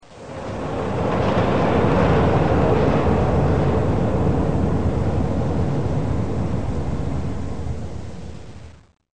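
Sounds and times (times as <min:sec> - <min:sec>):
train: 0:00.0 - 0:08.7.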